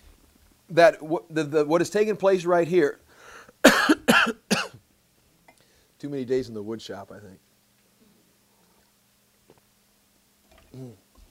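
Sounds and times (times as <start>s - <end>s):
speech: 0.7s - 3.0s, 6.0s - 7.5s, 10.8s - 11.0s
person coughing: 3.6s - 4.8s.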